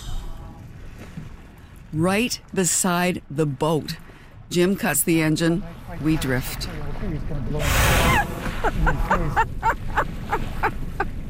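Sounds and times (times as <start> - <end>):
speech: 1.9 - 9.8
whales surfacing and blowing spray: 7.6 - 9.3
laughter: 8.0 - 11.1.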